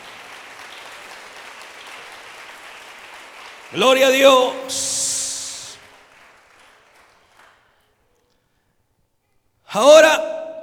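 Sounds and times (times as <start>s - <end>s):
audience applause: 0.0s - 7.6s
speech: 3.7s - 5.0s, 9.8s - 10.3s.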